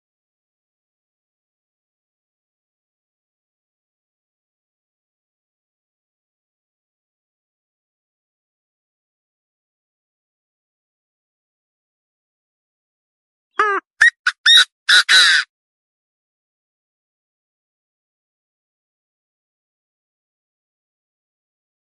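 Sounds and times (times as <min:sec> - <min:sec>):
partridge calling: 0:13.6 - 0:15.4.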